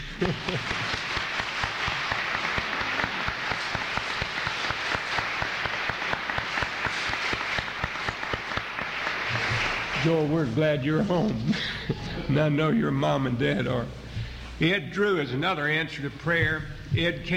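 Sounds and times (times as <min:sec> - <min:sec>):
laughter: 0:00.0 - 0:04.7, 0:09.1 - 0:13.9
audience applause: 0:00.0 - 0:11.1
speech: 0:00.2 - 0:01.0, 0:10.0 - 0:11.7, 0:12.3 - 0:14.0, 0:14.6 - 0:17.3.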